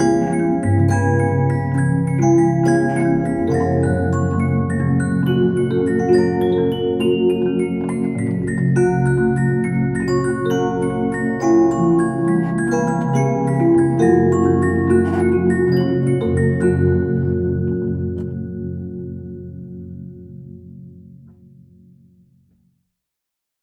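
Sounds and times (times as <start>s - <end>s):
christmas bells chiming: 0.0s - 18.2s.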